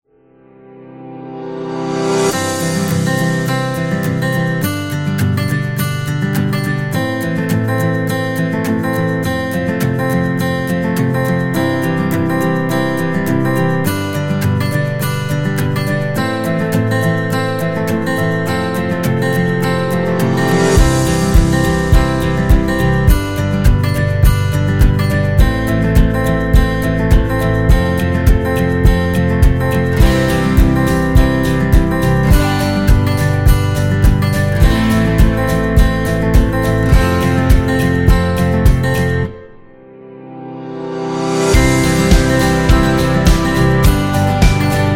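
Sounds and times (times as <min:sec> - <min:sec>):
happy acoustic guitar music: 0:01.1 - 0:44.9.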